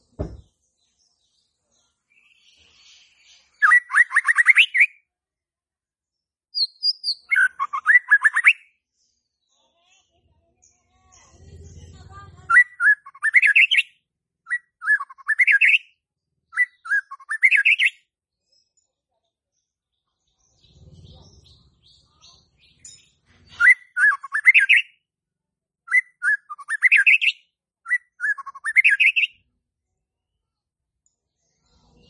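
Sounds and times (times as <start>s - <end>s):
white-rumped shama singing: 0.0s - 5.0s, 6.6s - 9.6s, 12.5s - 18.9s, 19.8s - 25.0s, 25.9s - 29.4s.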